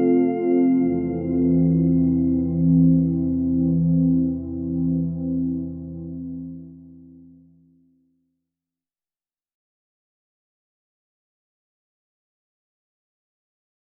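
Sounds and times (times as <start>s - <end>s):
synthesizer: 0.0s - 7.5s.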